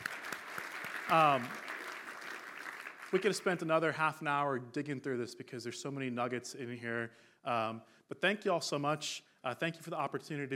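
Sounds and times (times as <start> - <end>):
round of applause: 0.0 - 3.6
speech: 1.1 - 1.6, 3.1 - 10.5.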